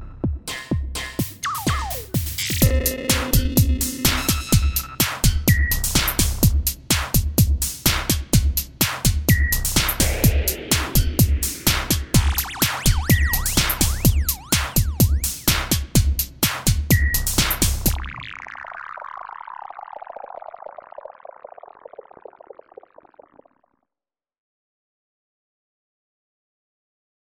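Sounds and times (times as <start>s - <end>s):
virus drum kit sounds: 0.0s - 18.0s.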